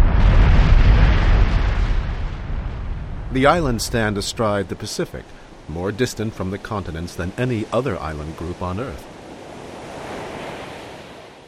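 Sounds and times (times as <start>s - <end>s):
volcanic eruption rumble: 0.0s - 7.8s
speech: 3.4s - 9.1s.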